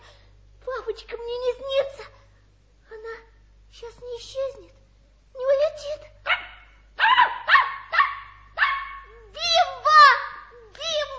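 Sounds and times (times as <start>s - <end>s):
speech: 0.9s - 2.2s, 3.8s - 4.8s, 5.4s - 6.2s
puppy yapping and barking: 6.3s - 9.2s.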